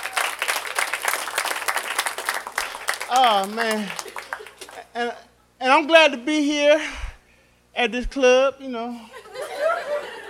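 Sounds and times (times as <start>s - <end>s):
comedy club audience applause: 0.0s - 4.8s
speech: 3.1s - 7.0s, 7.8s - 9.2s
laughter: 9.1s - 10.2s.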